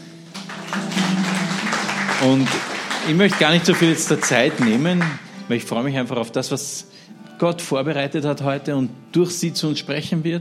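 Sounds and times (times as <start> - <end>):
audience applause: 0.2 - 5.3
speech: 2.2 - 10.3.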